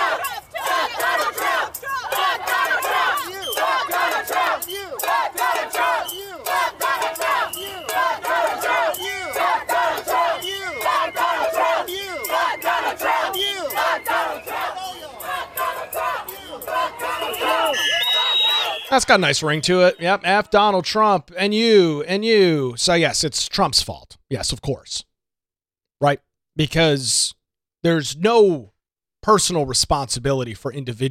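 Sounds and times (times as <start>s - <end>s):
protest crowd chanting and shouting in unison: 0.0s - 21.1s
speech: 19.0s - 25.1s, 26.0s - 31.1s.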